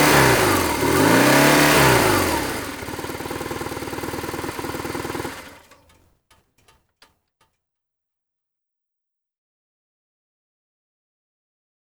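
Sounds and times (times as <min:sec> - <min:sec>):
BMW R 1100 S motorcycle engine: 0:00.0 - 0:06.0.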